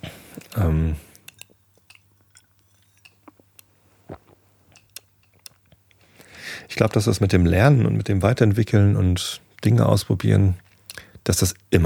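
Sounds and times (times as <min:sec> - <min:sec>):
speech: 0:00.0 - 0:01.1, 0:06.8 - 0:10.6, 0:11.2 - 0:11.8
person taking a sip of water: 0:03.1 - 0:05.0.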